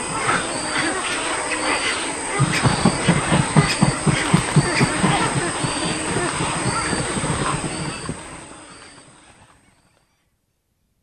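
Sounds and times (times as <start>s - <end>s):
wood stork making rough rasping calls: 0.0s - 9.3s.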